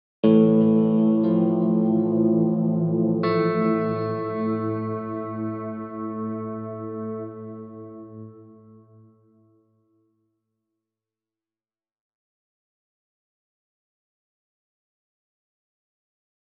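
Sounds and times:
guitar: 0.2s - 9.5s.

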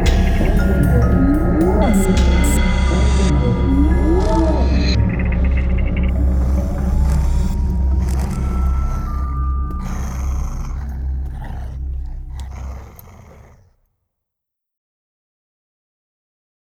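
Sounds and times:
horror music: 0.0s - 12.3s.

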